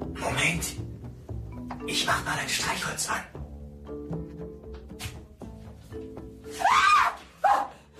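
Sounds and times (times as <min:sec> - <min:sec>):
speech: 0:00.2 - 0:00.8, 0:01.9 - 0:03.3
woman screaming in fright: 0:06.5 - 0:07.8.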